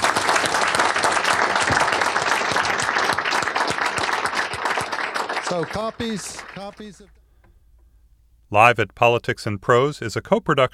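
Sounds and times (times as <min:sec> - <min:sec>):
audience applause: 0:00.0 - 0:07.1
speech: 0:05.5 - 0:07.2, 0:08.5 - 0:10.7.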